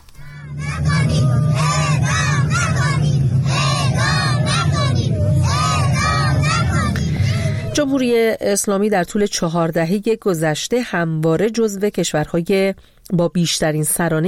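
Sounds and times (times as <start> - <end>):
low rumble: 0.0 - 8.2
protest crowd crying and shouting: 0.2 - 7.8
speech: 8.0 - 14.2.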